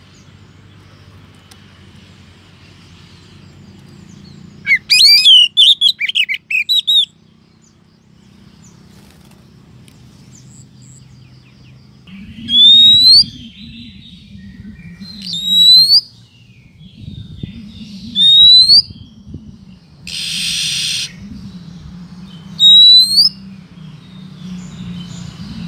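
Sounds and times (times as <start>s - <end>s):
Oriental magpie-robin rising whistle: 4.6s - 7.1s, 12.4s - 16.1s, 17.5s - 19.0s, 20.1s - 21.3s, 22.6s - 23.4s.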